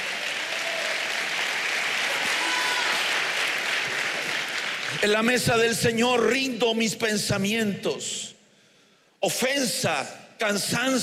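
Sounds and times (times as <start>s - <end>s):
audience clapping: 0.0s - 5.7s
speech: 5.0s - 8.3s, 9.2s - 11.0s.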